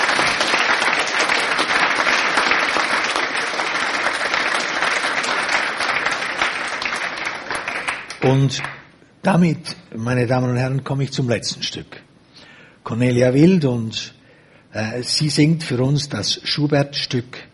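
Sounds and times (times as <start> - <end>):
large audience applause: 0.0 - 8.8
speech: 8.3 - 12.0, 12.9 - 17.5.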